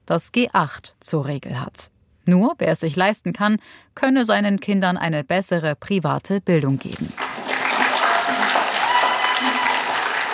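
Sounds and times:
speech: 0.1s - 7.2s
crowd applauding from visitors' gallery: 7.1s - 10.3s.

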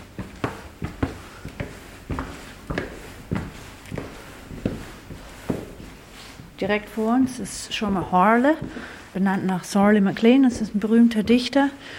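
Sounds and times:
footsteps climbing a staircase in a college building: 0.0s - 11.9s
speech: 6.6s - 11.9s.

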